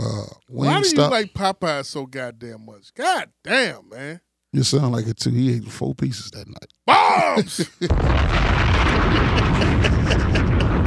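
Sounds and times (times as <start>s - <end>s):
speech: 0.3s - 10.3s
laughter: 7.2s - 8.0s, 8.9s - 10.8s
bomb explosion sound effect: 7.9s - 10.8s.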